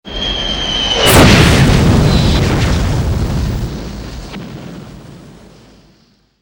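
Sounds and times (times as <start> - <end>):
big explosion in a war zone: 0.8 - 6.2.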